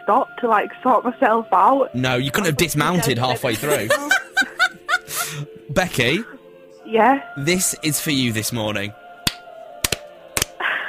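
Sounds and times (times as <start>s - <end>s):
speech: 0.1s - 4.3s, 5.3s - 9.0s
laughter: 2.3s - 6.2s
slow hand clapping: 9.2s - 10.8s.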